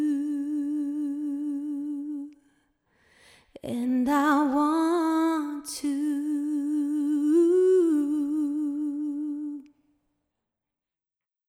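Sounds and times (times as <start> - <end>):
female vocal with reflection and small plate reverb: 0.0 - 2.5, 3.5 - 9.7.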